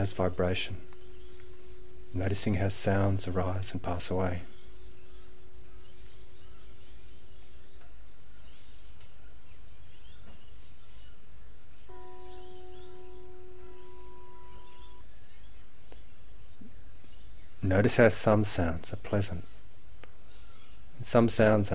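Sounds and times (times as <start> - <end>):
bells: 0.0 - 5.5, 11.9 - 15.0
birds: 0.0 - 21.7.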